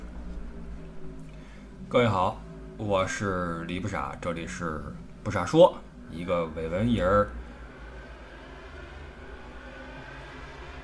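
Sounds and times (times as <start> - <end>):
speech: 1.9 - 7.4
motorcycles speeding on the street at night: 2.5 - 10.8.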